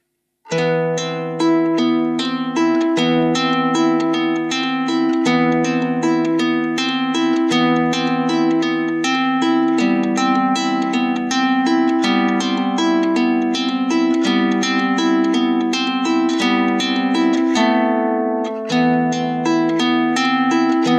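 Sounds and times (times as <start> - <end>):
gusli playing: 0.0 - 20.9.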